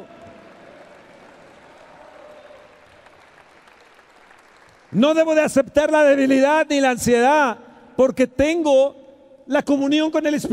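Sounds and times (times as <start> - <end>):
audience applauding loudly: 0.0 - 5.4
speech: 4.9 - 10.5.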